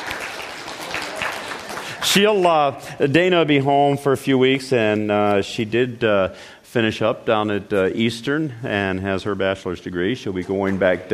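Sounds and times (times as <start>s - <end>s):
audience clapping: 0.0s - 2.7s
speech: 2.0s - 11.1s.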